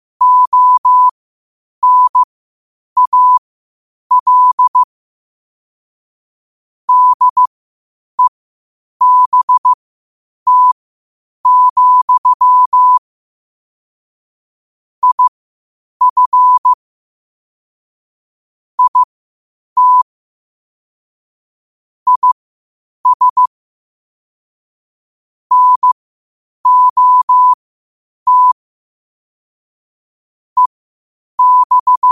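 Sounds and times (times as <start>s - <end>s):
morse code at 5 wpm: 0.2s - 1.1s, 1.8s - 2.3s, 3.0s - 3.4s, 4.1s - 4.9s, 6.9s - 7.5s, 9.0s - 9.8s, 10.5s - 10.8s, 11.4s - 13.0s, 15.0s - 15.3s, 16.0s - 16.8s, 18.8s - 19.1s, 19.8s - 20.0s, 22.1s - 22.4s, 23.0s - 23.5s, 25.5s - 26.0s, 26.6s - 27.6s, 28.3s - 28.6s, 31.4s - 32.1s.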